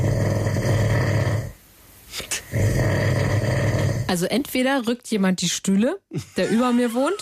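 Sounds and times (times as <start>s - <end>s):
person snoring: 0.0s - 1.6s, 2.2s - 4.1s
snort: 0.0s - 4.1s
speech: 4.1s - 7.1s.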